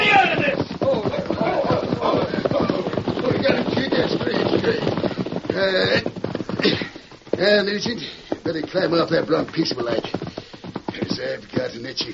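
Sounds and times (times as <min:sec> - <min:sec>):
horse hooves clopping: 0:00.0 - 0:12.1
speech: 0:07.4 - 0:10.2, 0:11.4 - 0:12.1.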